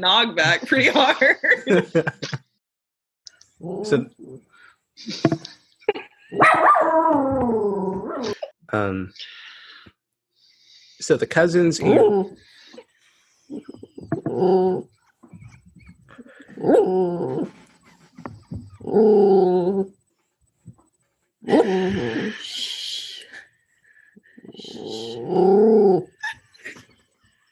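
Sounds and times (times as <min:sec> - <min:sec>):
speech: 0:00.0 - 0:02.4, 0:03.6 - 0:04.4, 0:05.0 - 0:09.4, 0:11.0 - 0:12.5, 0:13.5 - 0:15.4, 0:16.5 - 0:17.6, 0:18.5 - 0:20.0, 0:21.4 - 0:23.1, 0:24.6 - 0:26.8
laughter: 0:00.6 - 0:02.5
dog growling: 0:03.6 - 0:04.7, 0:06.4 - 0:08.4, 0:11.8 - 0:12.5, 0:13.5 - 0:20.0, 0:24.6 - 0:26.2.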